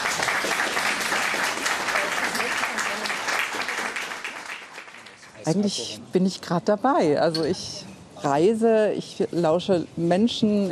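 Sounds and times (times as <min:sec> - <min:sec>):
audience applause: 0:00.0 - 0:05.2
speech: 0:05.5 - 0:10.7.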